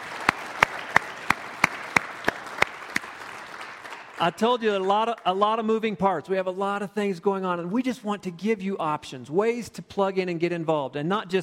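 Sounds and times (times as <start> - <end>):
audience clapping in unison at a gathering: 0.0 - 5.7
low wash of noise: 0.0 - 11.4
speech: 4.2 - 11.4.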